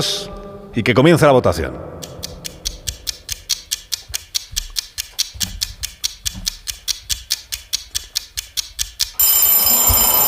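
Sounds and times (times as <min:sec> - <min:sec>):
speech: 0:00.0 - 0:02.0
timer ticking: 0:02.0 - 0:10.2
loud bright timer bell ringing: 0:09.2 - 0:10.2.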